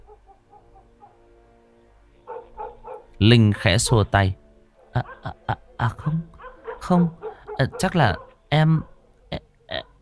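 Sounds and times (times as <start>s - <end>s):
dog barking and yapping: 0.0s - 1.2s, 2.3s - 4.1s, 4.8s - 9.1s
speech: 3.2s - 4.4s, 5.0s - 6.3s, 6.9s - 8.9s.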